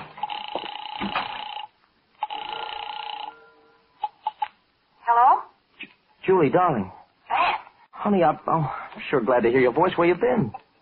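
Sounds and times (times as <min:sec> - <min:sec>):
telephone ringing over the line: 0:00.2 - 0:04.5
speech: 0:06.3 - 0:07.0, 0:08.0 - 0:10.6.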